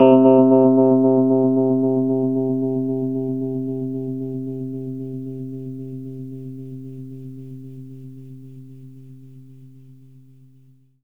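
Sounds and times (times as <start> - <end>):
fast Rhodes electric piano: 0.0 - 4.2.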